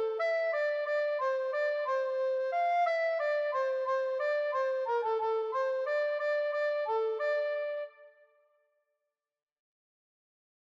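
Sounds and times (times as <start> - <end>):
tenor recorder: 0.0 - 8.1.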